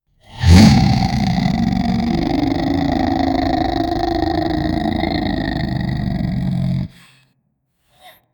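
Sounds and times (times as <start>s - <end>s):
monster growling: 0.2s - 7.1s.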